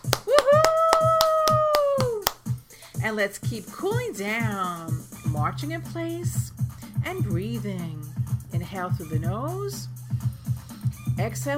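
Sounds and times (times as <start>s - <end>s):
person cheering: 0.0s - 2.4s
exercise class hands clapping: 0.0s - 2.6s
speech: 3.0s - 9.9s, 11.2s - 11.5s.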